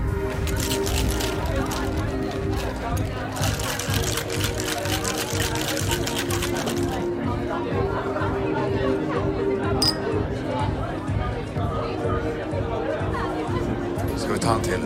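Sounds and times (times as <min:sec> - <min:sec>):
babble of many overlapping voices in a bar: 0:00.1 - 0:14.8
glasses and dishes clinking: 0:09.7 - 0:10.2.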